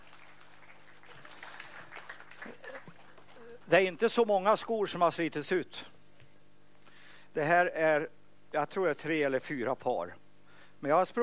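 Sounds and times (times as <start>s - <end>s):
audience applause: 0.0s - 3.7s
speech: 3.7s - 6.0s, 7.4s - 10.2s, 10.8s - 11.2s.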